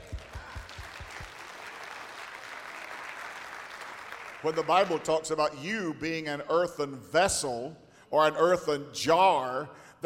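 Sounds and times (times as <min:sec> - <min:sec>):
audience hand clapping: 0:00.0 - 0:05.0
speech: 0:04.4 - 0:09.9.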